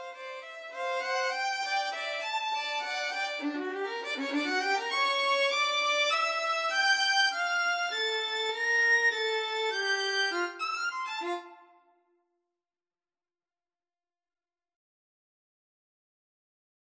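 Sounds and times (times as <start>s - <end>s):
violin trio waltz: 0.0s - 11.4s.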